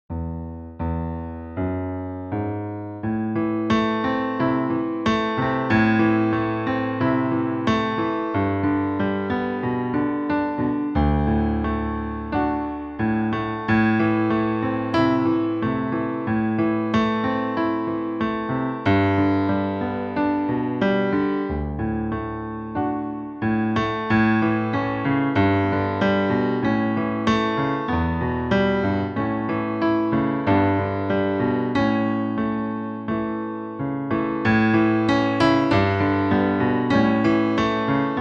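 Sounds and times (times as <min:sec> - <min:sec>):
piano: 0:00.0 - 0:38.2.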